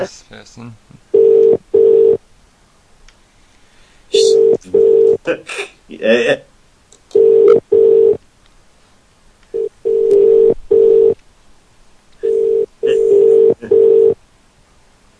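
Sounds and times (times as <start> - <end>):
speech: 0.0 - 1.5, 4.4 - 6.5
telephone ringback tone while waiting for pickup: 1.2 - 2.2, 4.2 - 5.2, 7.2 - 8.2, 9.6 - 11.2, 12.2 - 14.2.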